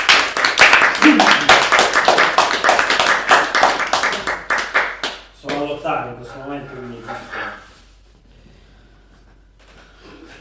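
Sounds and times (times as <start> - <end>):
crowd applauding: 0.0 - 5.2
speech: 6.1 - 7.4.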